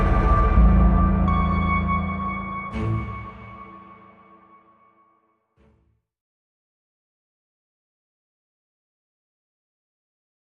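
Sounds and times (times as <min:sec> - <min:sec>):
orchestra: 0:00.0 - 0:04.7.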